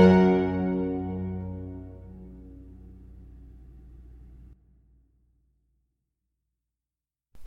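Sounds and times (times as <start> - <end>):
violin and continuo playing a presto sonata in G major: 0.0 - 1.9.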